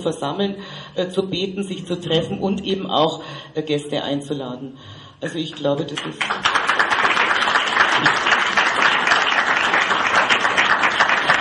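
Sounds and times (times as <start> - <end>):
speech: 0.0 - 6.8
audience applauding approvingly: 6.0 - 11.3.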